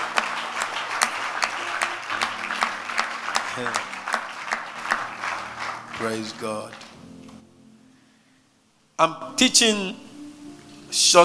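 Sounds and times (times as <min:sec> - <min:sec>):
audience clapping: 0:00.0 - 0:07.4
speech: 0:03.6 - 0:03.9, 0:06.0 - 0:06.8, 0:09.0 - 0:10.1, 0:10.9 - 0:11.2.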